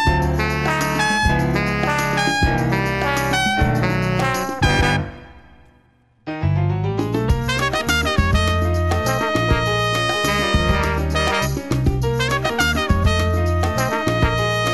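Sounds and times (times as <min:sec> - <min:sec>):
horns playing: 0:00.0 - 0:05.8, 0:07.5 - 0:11.6, 0:12.2 - 0:14.7
salsa music: 0:00.0 - 0:14.7.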